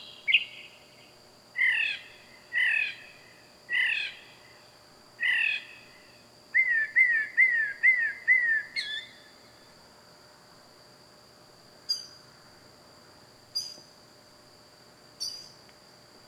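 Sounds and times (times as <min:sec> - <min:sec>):
loud bird calling at night: 0:00.0 - 0:00.8, 0:01.6 - 0:03.1, 0:05.2 - 0:09.3.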